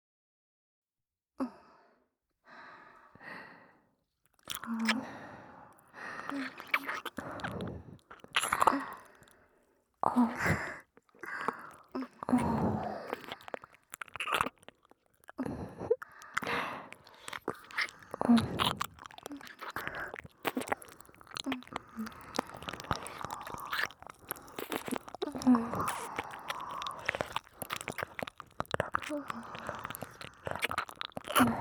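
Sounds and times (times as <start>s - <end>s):
kissing and licking sounds in both ears: 4.4s - 5.1s, 6.1s - 9.2s, 10.3s - 15.4s, 16.0s - 31.5s.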